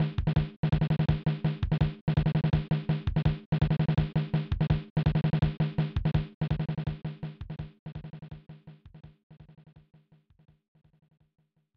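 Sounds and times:
drumbeat: 0.0 - 10.5.

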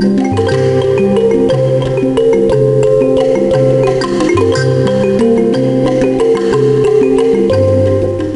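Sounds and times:
music loop: 0.0 - 8.3.

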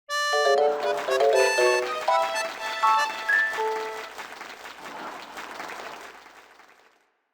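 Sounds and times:
level clear jingle: 0.1 - 4.1.

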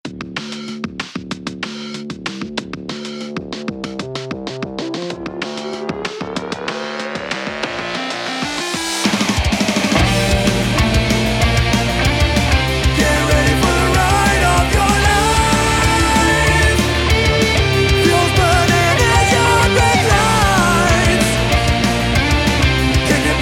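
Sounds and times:
anthem music: 5.0 - 23.4.

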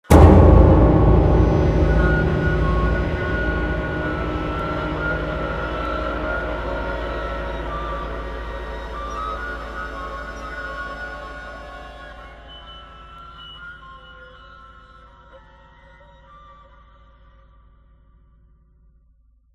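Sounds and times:
short scary music: 0.1 - 14.8.

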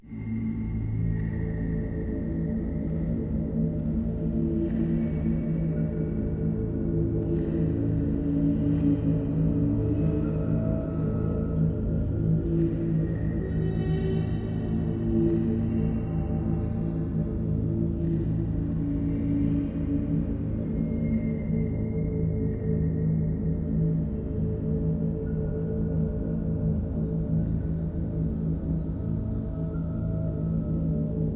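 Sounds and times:
bass: 0.0 - 31.3.

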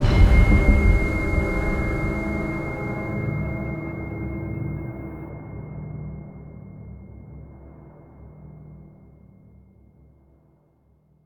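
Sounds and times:
tense music sting: 0.0 - 5.5.

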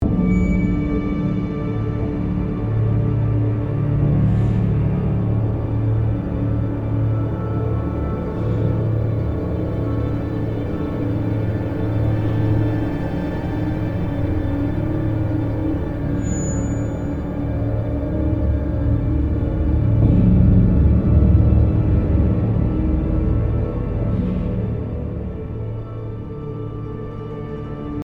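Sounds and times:
tense music loop: 0.0 - 28.0.

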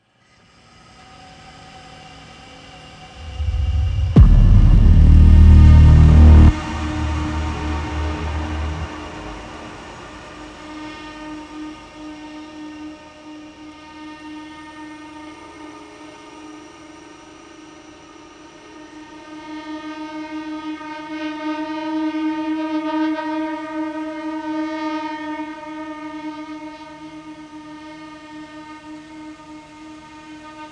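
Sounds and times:
ambient combat music: 3.2 - 10.2.

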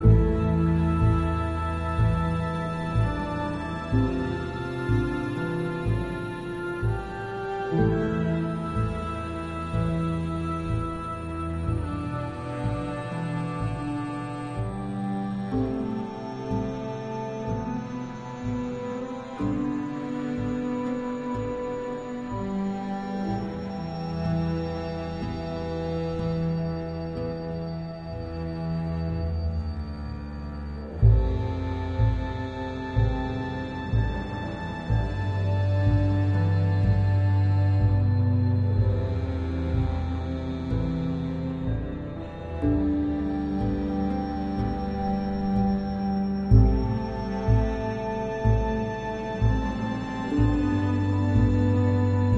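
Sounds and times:
sad music loop: 0.0 - 52.3.

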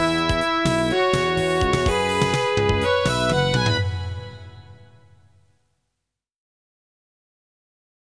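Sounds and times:
synth music: 0.0 - 5.3.

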